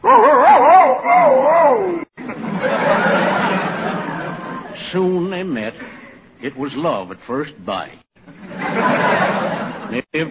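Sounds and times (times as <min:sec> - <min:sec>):
man imitating a male dog answering bark: 0:00.0 - 0:02.1
laughter: 0:02.2 - 0:04.8, 0:08.2 - 0:10.3
speech: 0:04.9 - 0:08.0, 0:08.8 - 0:10.3.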